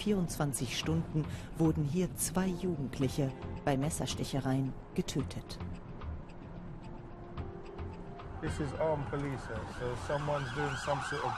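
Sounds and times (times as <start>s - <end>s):
speech: 0.0s - 5.8s, 8.4s - 11.3s
faint traffic hum: 0.0s - 11.3s
police siren wailing: 8.4s - 11.3s.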